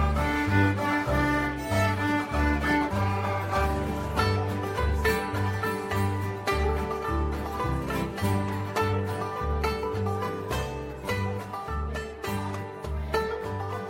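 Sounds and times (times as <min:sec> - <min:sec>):
banjo: 0:00.0 - 0:13.8
fiddle: 0:00.0 - 0:13.8.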